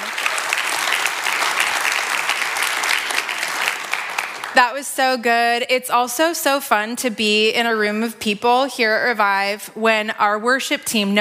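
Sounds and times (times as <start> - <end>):
church audience applause: 0.0 - 4.7
speech: 4.6 - 11.1.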